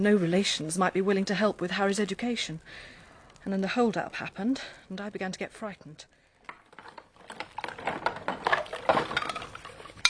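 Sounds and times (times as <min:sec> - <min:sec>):
speech: 0:00.0 - 0:06.2
dishes clinking while washing up in a sink: 0:08.0 - 0:10.0.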